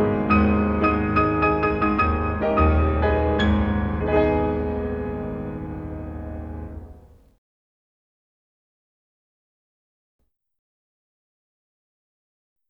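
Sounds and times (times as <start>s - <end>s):
etude piece: 0.0s - 7.2s.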